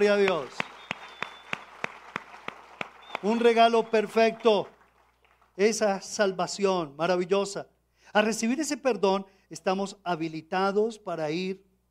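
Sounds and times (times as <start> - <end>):
speech: 0.0 - 0.7, 3.2 - 4.8, 5.6 - 11.7
audience clapping in unison: 0.0 - 5.9.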